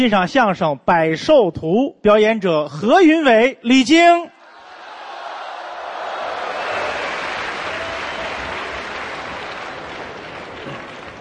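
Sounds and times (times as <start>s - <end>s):
speech: 0.0s - 4.3s
audience applause: 4.6s - 11.1s.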